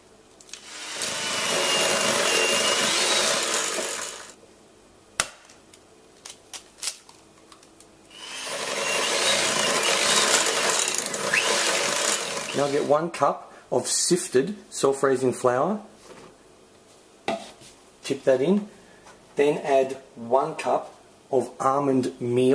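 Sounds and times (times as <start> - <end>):
electric mixer beating eggs into cake batter: 0.6 - 4.4, 8.1 - 12.9
speech: 12.6 - 15.9, 18.1 - 18.8, 19.4 - 22.5.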